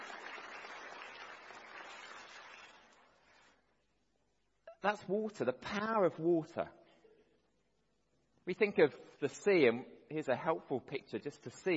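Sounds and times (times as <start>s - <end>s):
audience clapping for a child: 0.0s - 3.6s
speech: 4.8s - 6.8s, 8.5s - 11.7s.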